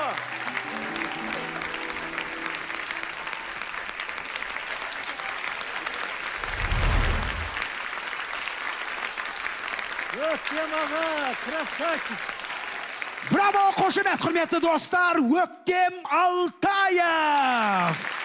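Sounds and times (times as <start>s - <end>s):
last notes of music: 0.0s - 4.8s
audience applause after a song: 0.0s - 14.0s, 17.8s - 18.2s
speech: 10.4s - 12.3s, 13.2s - 18.1s.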